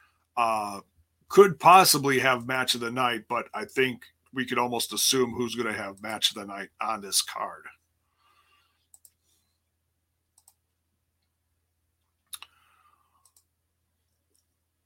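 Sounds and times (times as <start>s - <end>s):
speech: 0.4s - 7.8s
computer mouse clicks while scrolling a web page: 8.9s - 9.3s, 10.4s - 10.6s, 13.2s - 13.5s.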